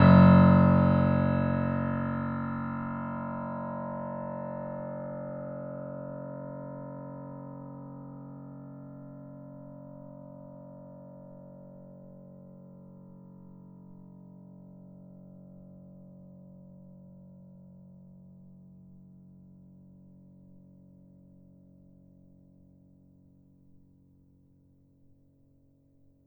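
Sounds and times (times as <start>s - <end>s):
bitKlavier grand piano playing F sharp 1, binaural: 0.0s - 4.5s.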